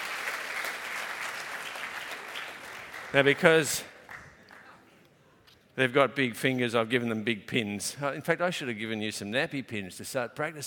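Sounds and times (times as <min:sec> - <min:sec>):
audience clapping: 0:00.0 - 0:04.9
speech: 0:03.1 - 0:03.9, 0:05.8 - 0:10.6.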